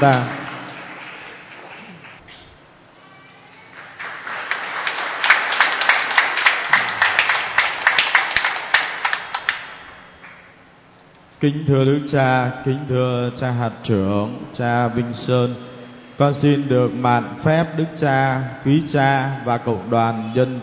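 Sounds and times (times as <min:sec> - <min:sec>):
speech: 0:00.0 - 0:00.4, 0:11.4 - 0:20.6
audience applause: 0:00.0 - 0:02.2, 0:03.6 - 0:10.4.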